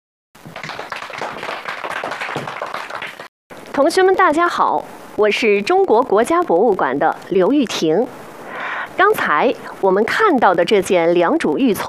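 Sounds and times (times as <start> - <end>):
crowd applause: 0.4 - 3.3
speech: 3.8 - 8.2, 9.0 - 11.8.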